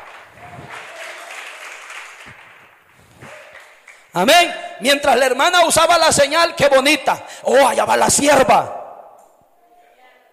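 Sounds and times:
audience applause: 0:00.0 - 0:04.1
speech: 0:04.2 - 0:08.8.

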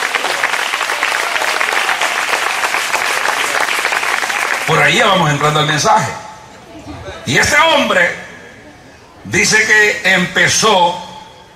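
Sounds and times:
audience applauding: 0:00.0 - 0:05.6
speech: 0:04.7 - 0:06.2, 0:07.2 - 0:08.2, 0:09.3 - 0:11.0.

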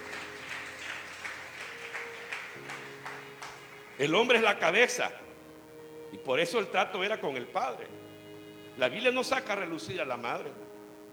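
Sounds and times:
audience clapping: 0:00.0 - 0:05.0
speech: 0:04.0 - 0:05.2, 0:06.2 - 0:08.1, 0:08.8 - 0:10.6.

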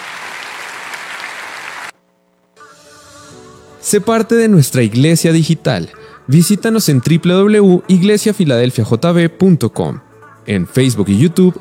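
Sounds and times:
audience applause: 0:00.0 - 0:02.0
speech: 0:03.9 - 0:11.5.

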